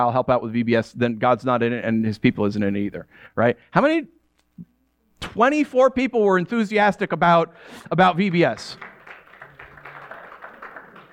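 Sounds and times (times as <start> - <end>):
speech: 0.0 - 8.9
audience clapping: 8.3 - 11.1.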